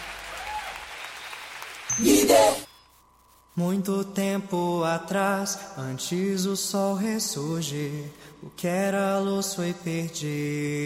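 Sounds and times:
voices cheering: 0.0 - 1.1
audience applause: 0.0 - 1.9
speech: 2.0 - 2.2, 3.6 - 10.8.

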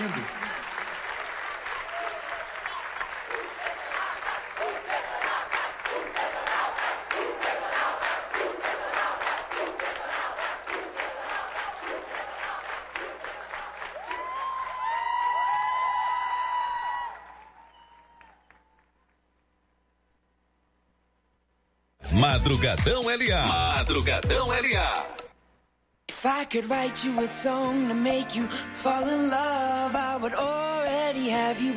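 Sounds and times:
audience applause at a live music show: 0.0 - 19.0
whistles and cheers: 1.4 - 2.9, 14.0 - 18.9
speech: 22.4 - 25.2, 26.2 - 30.6, 31.2 - 31.7.

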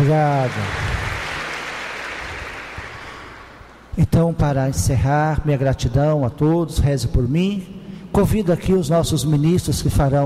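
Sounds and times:
audience applause for the parish priest at a parish gathering: 0.0 - 3.8
speech: 0.1 - 0.9, 4.0 - 10.2.

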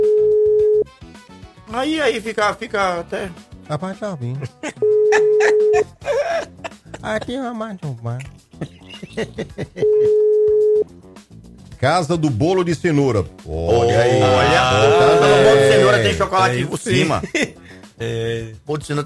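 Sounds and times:
unanswered phone call ringing tone: 0.0 - 0.9, 4.8 - 5.9, 9.8 - 10.8
speech: 1.8 - 10.2, 11.8 - 19.0
laughter: 4.4 - 7.2, 8.6 - 10.2, 14.0 - 17.6.

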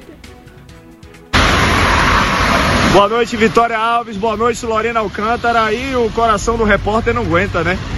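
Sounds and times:
loud hissing noise: 1.3 - 7.9
radio segment jingle: 2.8 - 7.7
speech: 3.0 - 7.9.

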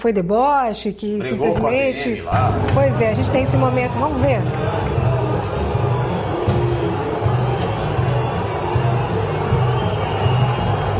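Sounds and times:
speech: 0.0 - 5.0
crowd chanting: 1.3 - 10.9
large stadium crowd roaring: 2.3 - 10.9.

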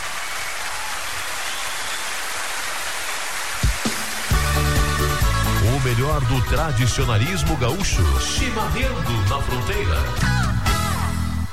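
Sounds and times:
audience applause: 0.0 - 5.3
speech: 5.9 - 10.6.

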